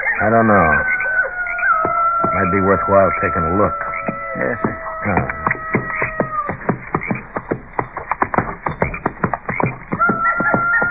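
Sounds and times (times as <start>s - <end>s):
coyotes howling: 0.0s - 10.9s
speech: 0.2s - 0.9s, 2.3s - 3.8s, 4.4s - 5.5s.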